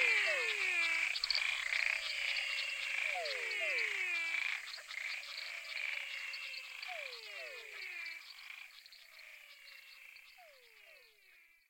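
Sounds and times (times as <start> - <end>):
many frogs calling with downward-sliding whistles: 0.0 - 11.2.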